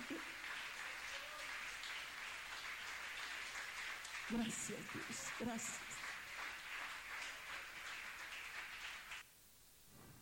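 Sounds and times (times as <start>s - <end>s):
audience applause: 0.0s - 9.2s
speech: 4.3s - 6.0s.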